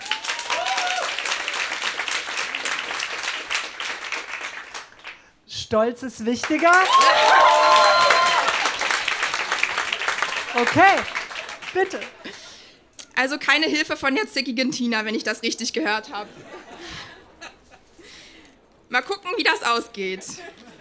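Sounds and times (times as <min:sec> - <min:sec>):
cheering voices: 0:00.0 - 0:01.3, 0:06.7 - 0:08.9
audience applause: 0:00.0 - 0:05.2, 0:06.5 - 0:12.4
speech: 0:05.7 - 0:08.2, 0:10.6 - 0:12.4, 0:13.2 - 0:16.6, 0:18.9 - 0:20.6.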